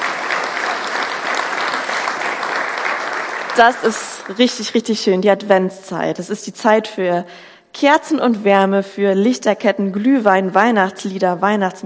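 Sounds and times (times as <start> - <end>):
audience applause: 0.0 - 4.6
speech: 3.6 - 11.8.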